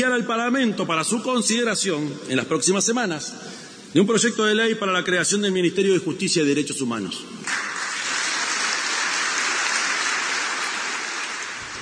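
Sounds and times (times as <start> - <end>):
speech: 0.0 - 7.7
applause: 7.4 - 11.8.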